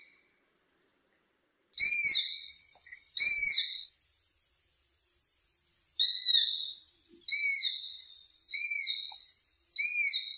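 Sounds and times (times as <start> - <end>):
hawk screams and wavering whistles: 1.8 - 3.9, 5.9 - 10.3.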